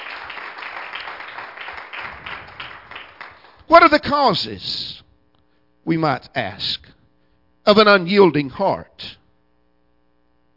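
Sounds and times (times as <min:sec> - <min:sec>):
church congregation clapping in praise: 0:00.0 - 0:04.1
speech: 0:03.7 - 0:05.0, 0:05.8 - 0:06.9, 0:07.7 - 0:09.2.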